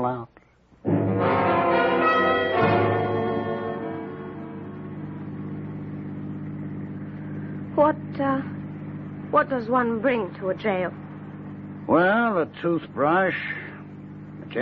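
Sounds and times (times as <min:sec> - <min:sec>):
speech: 0:00.0 - 0:00.4, 0:09.4 - 0:11.0, 0:11.9 - 0:13.6
arriving train engine: 0:01.1 - 0:14.5
train bell: 0:01.2 - 0:05.0.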